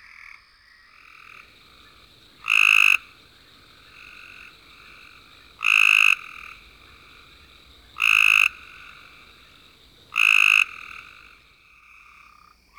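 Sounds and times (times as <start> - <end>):
Cope's gray treefrog giving a loud rapid buzzing trill: 1.3 - 11.5.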